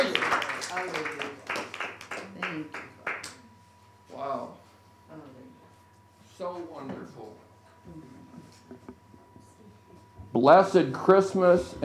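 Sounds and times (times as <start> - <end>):
audience clapping: 0.0 - 3.4
speech: 6.7 - 8.9, 10.4 - 11.8.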